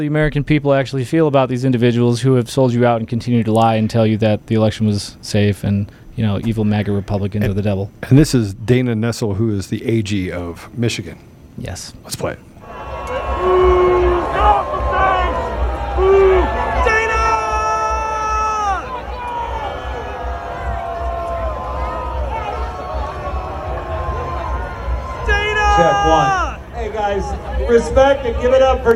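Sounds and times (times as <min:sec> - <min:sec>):
speech: 0:00.0 - 0:13.7, 0:27.1 - 0:28.9
hostile crowd shouting at speaker: 0:12.6 - 0:28.9.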